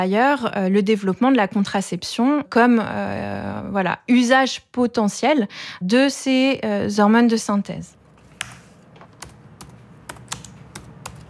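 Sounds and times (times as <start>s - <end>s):
speech: 0.0s - 8.0s
computer keyboard typing notes: 8.3s - 11.2s.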